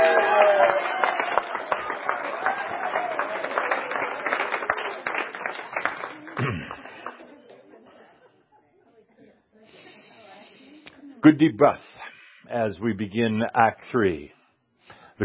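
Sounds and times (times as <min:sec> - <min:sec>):
crowd applause: 0:00.0 - 0:07.5
speech: 0:11.2 - 0:11.8, 0:12.5 - 0:14.4.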